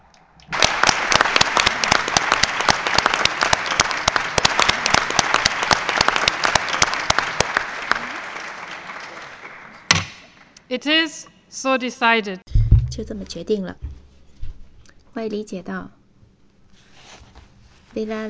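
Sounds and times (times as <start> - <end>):
delegates applauding to approve an election: 0.0 - 10.4
speech: 10.8 - 12.4, 13.0 - 13.8, 15.2 - 16.0, 18.0 - 18.2.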